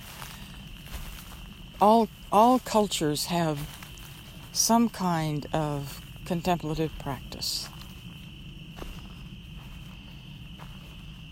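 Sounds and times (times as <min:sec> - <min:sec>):
careful footsteps outdoors: 0:00.0 - 0:11.3
crickets chirring: 0:00.0 - 0:11.3
speech: 0:01.8 - 0:03.8, 0:04.6 - 0:07.8.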